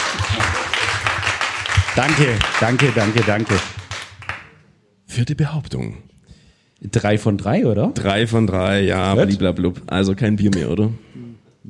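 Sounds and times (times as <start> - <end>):
audience applause: 0.0 - 4.6
speech: 2.0 - 3.8, 5.2 - 6.1, 6.8 - 11.6.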